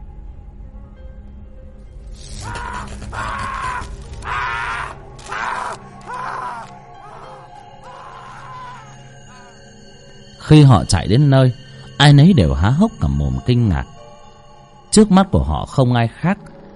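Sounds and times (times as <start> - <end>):
person moaning and wailing: 2.3 - 9.6
person screaming in agony late at night in a village: 2.3 - 9.6
speech: 10.5 - 14.0, 14.9 - 16.5.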